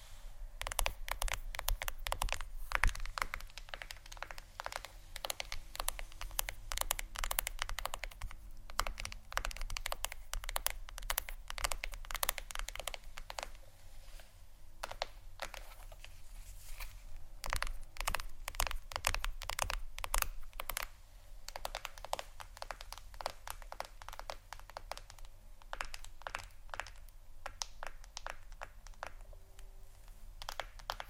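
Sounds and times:
fingers tapping on a phone or tablet screen: 0.6s - 13.6s, 17.4s - 20.9s, 21.5s - 29.7s, 30.4s - 31.0s.

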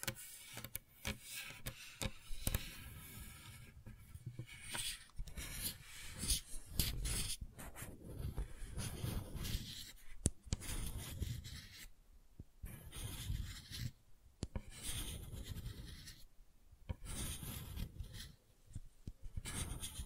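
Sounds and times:
quick clicks and taps: 0.0s - 2.7s
gentle scratching and brushing rubs: 0.0s - 11.9s, 12.6s - 14.0s, 14.6s - 16.3s, 16.9s - 20.0s.

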